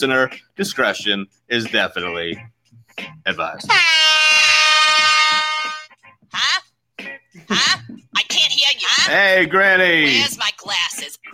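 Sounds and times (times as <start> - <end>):
speech: 0.0 - 4.0, 8.9 - 11.3
loud air horn blast: 3.7 - 5.9
short vocal outbursts: 3.7 - 6.7.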